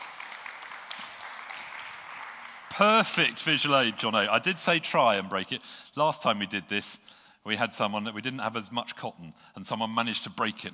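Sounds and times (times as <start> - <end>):
audience applause: 0.0 - 4.8
speech: 2.8 - 10.7.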